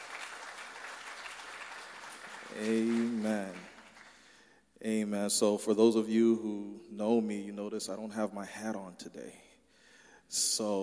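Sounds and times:
audience applause: 0.0s - 4.3s
speech: 2.5s - 3.6s, 4.8s - 9.5s, 10.3s - 10.8s.

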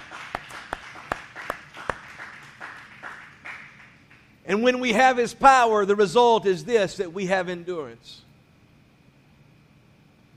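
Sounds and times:
audience hand clap of praise: 0.0s - 4.4s
speech: 4.5s - 8.3s.

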